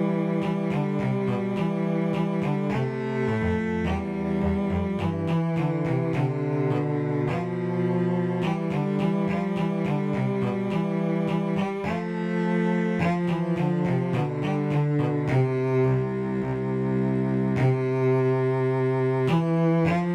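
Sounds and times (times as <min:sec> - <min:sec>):
cello melody: 0:00.0 - 0:20.1.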